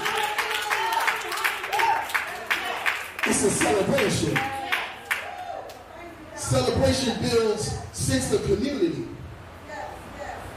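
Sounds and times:
audience applause: 0:00.0 - 0:05.5
speech: 0:03.3 - 0:04.6, 0:06.5 - 0:09.2.

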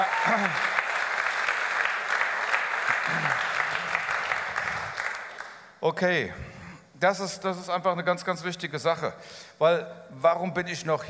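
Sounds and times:
speech: 0:00.0 - 0:00.7, 0:05.8 - 0:11.0
audience clapping: 0:00.0 - 0:05.8.

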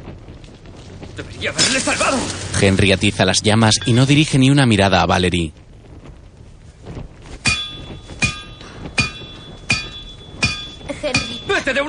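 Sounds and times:
speech: 0:01.2 - 0:05.6
hammer striking metal: 0:07.4 - 0:11.7.

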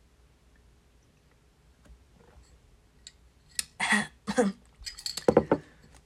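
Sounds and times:
glass clinks and handling noises while drinking: 0:04.8 - 0:05.9.

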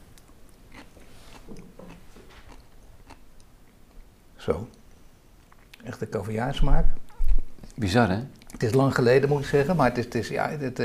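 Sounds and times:
chewing and biting while tasting green caviar-like food: 0:00.1 - 0:04.0
speech: 0:04.4 - 0:04.8, 0:05.9 - 0:07.0, 0:07.8 - 0:10.8.

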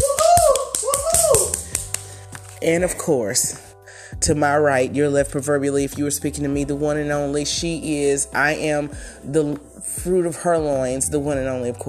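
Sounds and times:
sharp claps: 0:00.0 - 0:02.6
speech: 0:02.6 - 0:11.8.

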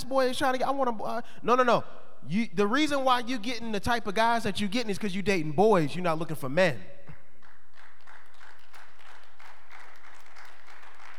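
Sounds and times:
speech: 0:00.0 - 0:07.0
audience clapping: 0:07.4 - 0:11.1.

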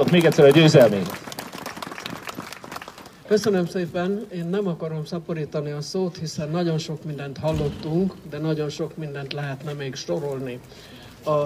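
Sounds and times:
speech: 0:00.0 - 0:01.2, 0:03.3 - 0:11.4
audience applause: 0:00.0 - 0:03.2.

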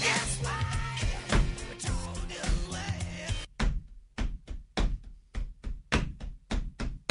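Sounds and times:
full band recording: 0:00.0 - 0:03.5
drum beat tapped out with bare hands: 0:00.5 - 0:01.7, 0:03.5 - 0:07.1.

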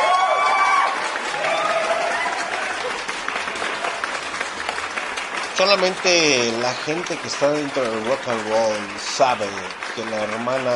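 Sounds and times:
whistles and cheers: 0:00.0 - 0:04.3
audience applause: 0:00.0 - 0:10.7
speech: 0:05.6 - 0:10.7.

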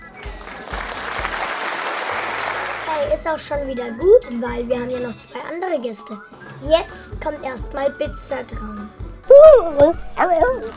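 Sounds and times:
audience applause: 0:00.0 - 0:03.1
speech: 0:03.0 - 0:10.7.

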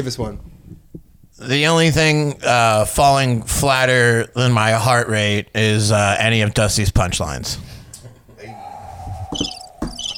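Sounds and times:
speech: 0:00.0 - 0:00.5, 0:01.4 - 0:07.8
crickets chirping: 0:08.5 - 0:10.1
dull thumps: 0:09.3 - 0:10.1.

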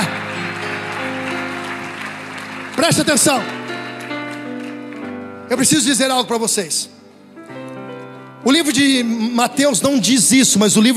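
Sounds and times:
crowd applauding: 0:00.0 - 0:06.2
speech: 0:02.8 - 0:03.6, 0:05.5 - 0:07.0, 0:08.4 - 0:10.9.

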